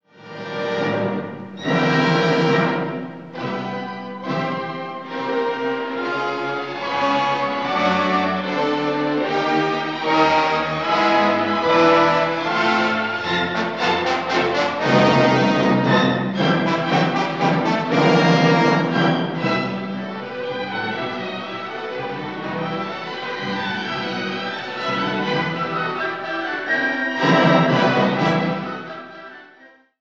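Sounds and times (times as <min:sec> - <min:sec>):
symphony movement allegro energico e passionato: 0:00.2 - 0:29.7.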